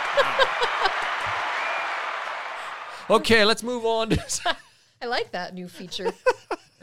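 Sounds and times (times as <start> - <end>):
laughter: 0.0 - 1.4, 5.8 - 6.6
applause sound effect: 0.0 - 3.5
speech: 3.1 - 6.4.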